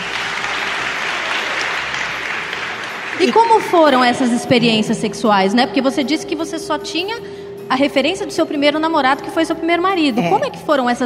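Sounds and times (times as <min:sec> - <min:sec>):
applause: 0:00.0 - 0:04.3
speech: 0:03.2 - 0:11.0.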